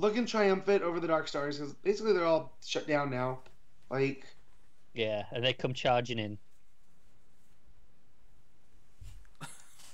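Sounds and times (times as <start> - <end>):
speech: 0.0 - 4.4, 5.0 - 6.5
cough: 9.4 - 9.9.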